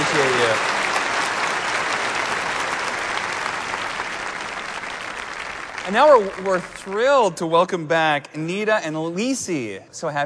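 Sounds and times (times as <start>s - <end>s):
audience applause: 0.0s - 7.4s
speech: 5.9s - 10.2s.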